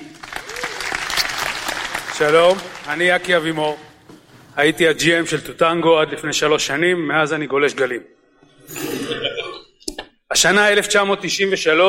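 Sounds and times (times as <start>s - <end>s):
audience applause: 0.0s - 4.1s
speech: 2.2s - 3.9s, 4.6s - 8.8s, 10.3s - 11.8s.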